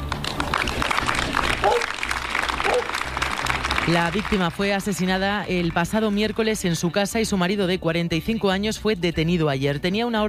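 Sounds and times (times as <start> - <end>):
applause at a protest gathering: 0.0 - 6.8
speech: 3.9 - 10.2.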